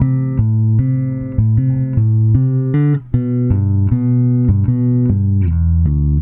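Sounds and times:
indie rock bass guitar: 0.0s - 6.2s.

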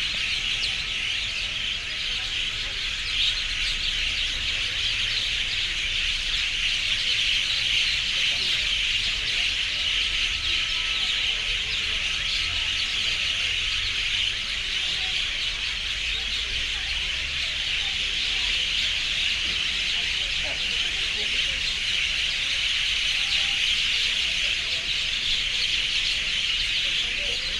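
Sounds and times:
urban birds screaming in chorus: 0.0s - 27.5s.

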